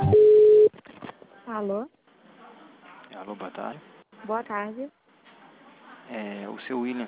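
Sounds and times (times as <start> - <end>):
telephone line buzzing tones during call transfer: 0.1 - 0.7
speech: 3.4 - 5.0, 6.1 - 7.0.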